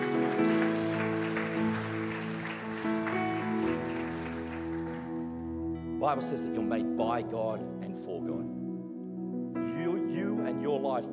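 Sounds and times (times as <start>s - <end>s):
audience clapping: 0.0s - 5.6s
sustained organ or keyboard chords: 0.0s - 11.1s
speech: 6.0s - 8.6s, 10.5s - 11.1s.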